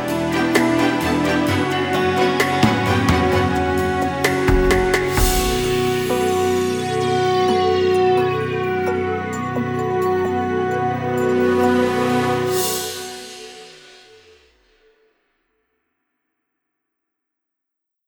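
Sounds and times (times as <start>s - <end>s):
hospital drama news bed music: 0.0s - 14.4s.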